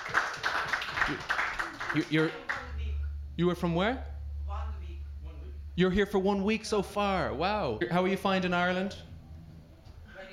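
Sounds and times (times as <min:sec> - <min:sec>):
audience applause: 0:00.0 - 0:02.6
speech: 0:01.1 - 0:01.3, 0:01.9 - 0:02.4, 0:03.4 - 0:04.1, 0:05.8 - 0:09.1.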